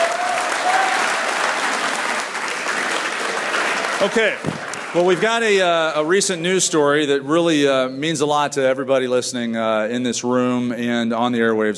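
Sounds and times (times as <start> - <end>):
audience applause for the blood drive: 0.0 - 6.0
speech: 4.0 - 11.7.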